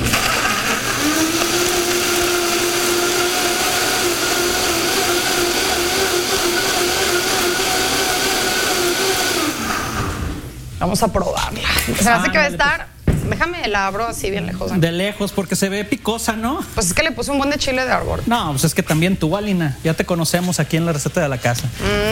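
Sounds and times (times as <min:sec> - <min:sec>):
blender blending salsa without water: 0:00.0 - 0:10.6
speech: 0:11.0 - 0:22.1.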